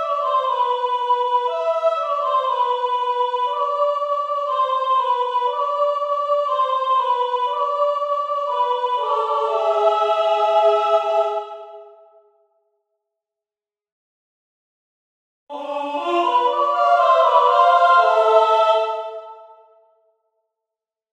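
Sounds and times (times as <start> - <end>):
soprano and alto voices: 0.0 - 12.0, 15.5 - 19.7.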